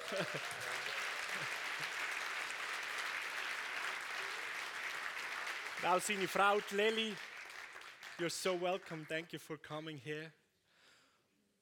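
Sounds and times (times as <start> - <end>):
laughter: 0.0 - 2.0
audience applause: 0.0 - 9.2
speech: 0.1 - 2.0, 5.8 - 7.3, 8.2 - 10.4.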